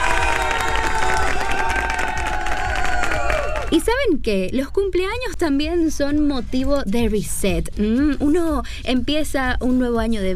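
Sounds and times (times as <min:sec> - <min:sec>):
audience applause and cheering: 0:00.0 - 0:03.8
speech: 0:03.7 - 0:10.3.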